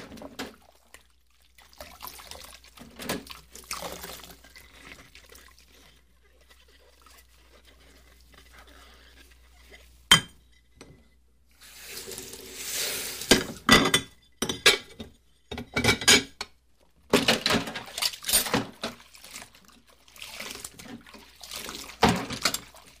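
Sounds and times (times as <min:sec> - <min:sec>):
dishes washed in a kitchen sink: 0:00.0 - 0:22.9
plates clinking in a kitchen: 0:13.3 - 0:16.5.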